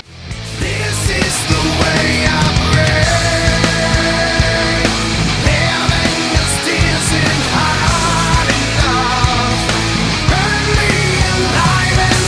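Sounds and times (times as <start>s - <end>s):
metal music: 0.0s - 12.2s.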